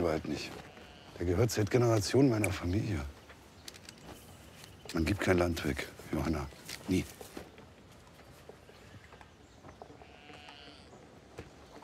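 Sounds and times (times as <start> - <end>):
speech: 0.0 - 3.2, 4.9 - 7.3
sheep bleating: 0.4 - 1.3, 10.0 - 10.9.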